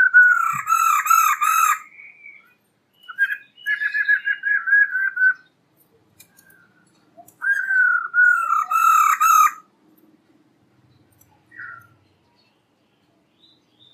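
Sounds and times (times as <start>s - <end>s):
black-throated laughingthrush song of whistles and a harsh burst: 0.0s - 5.5s, 7.3s - 9.5s.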